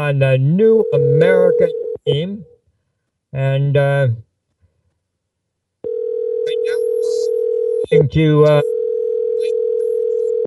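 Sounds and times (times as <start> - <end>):
speech: 0.0 - 2.5, 3.3 - 4.3, 7.9 - 8.7
telephone dial tone after a phone call drops: 5.8 - 6.6, 7.3 - 7.9, 8.6 - 10.4.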